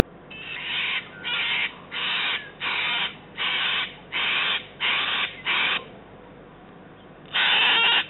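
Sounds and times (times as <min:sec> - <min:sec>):
cockatoo giving loud grating screeches: 0:00.3 - 0:05.9, 0:07.3 - 0:08.0.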